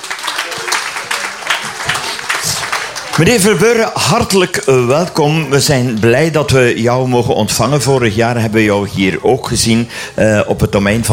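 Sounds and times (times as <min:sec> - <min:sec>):
audience applause: 0:00.0 - 0:06.3
speech: 0:03.2 - 0:11.1.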